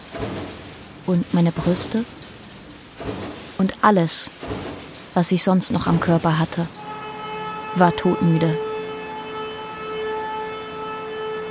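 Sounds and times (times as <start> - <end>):
speech: 1.1 - 2.2, 3.1 - 4.5, 5.2 - 6.8, 7.8 - 8.6
siren sounding: 6.7 - 11.4.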